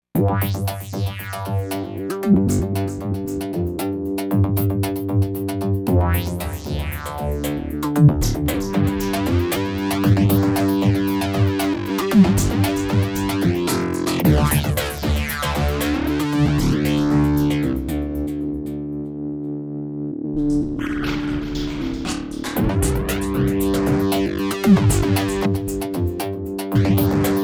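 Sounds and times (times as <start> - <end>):
synth: 0.2 - 27.4.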